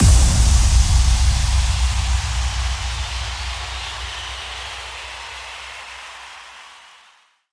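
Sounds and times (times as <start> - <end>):
impact: 0.0 - 5.6.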